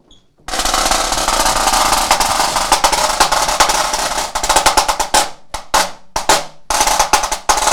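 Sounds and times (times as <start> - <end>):
high-tension snare drum with a Kevlar head played: 0.5 - 7.7.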